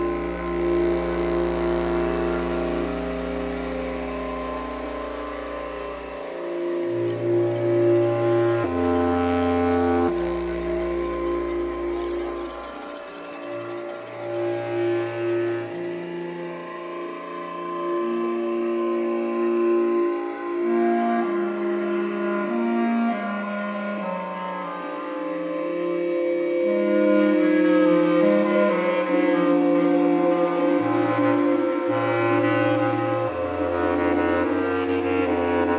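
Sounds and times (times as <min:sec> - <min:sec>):
bass clarinet: 0:00.0 - 0:35.7.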